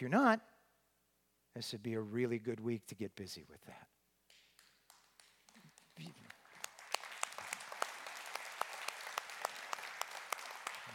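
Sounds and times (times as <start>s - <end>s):
speech: 0.0s - 0.5s, 1.6s - 4.0s, 6.0s - 6.3s
audience clapping: 4.3s - 10.9s.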